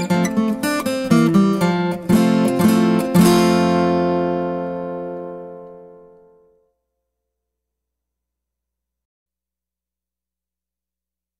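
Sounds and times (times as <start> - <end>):
guitar: 0.0 - 6.8.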